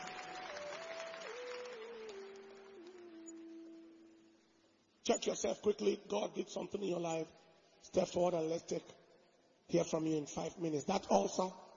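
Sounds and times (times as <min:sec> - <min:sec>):
audience clapping hands: 0:00.0 - 0:03.6
speech: 0:05.0 - 0:09.0, 0:09.7 - 0:11.7.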